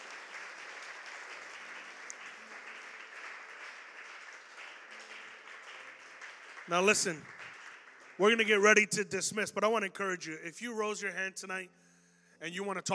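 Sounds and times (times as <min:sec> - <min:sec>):
audience hand clapping: 0:00.0 - 0:08.9
speech: 0:06.7 - 0:07.4, 0:08.2 - 0:11.8, 0:12.4 - 0:12.9.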